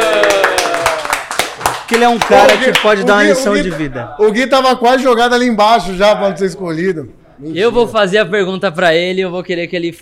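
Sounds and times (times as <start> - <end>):
applause: 0.0 - 3.1
speech: 1.9 - 10.0.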